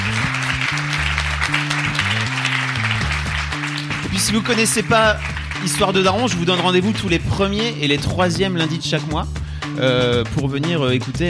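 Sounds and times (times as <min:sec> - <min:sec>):
audience applause: 0:00.0 - 0:06.9
speech: 0:04.2 - 0:11.2.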